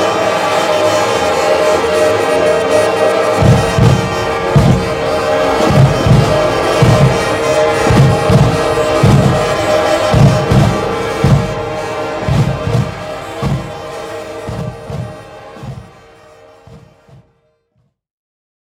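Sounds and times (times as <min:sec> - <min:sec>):
bees buzzing: 0:00.0 - 0:16.7
brass band of 350 musicians playing: 0:00.0 - 0:17.5
car horns: 0:00.0 - 0:17.7.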